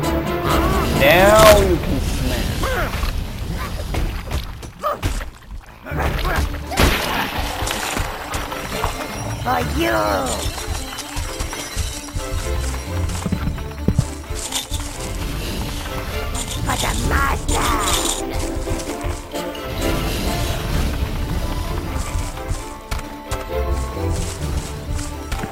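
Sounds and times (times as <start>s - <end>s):
hobbit hole being destroyed, crashing and shattering: 0.6s - 25.5s
debris breaking and clattering: 0.8s - 25.5s
speech: 1.0s - 1.8s.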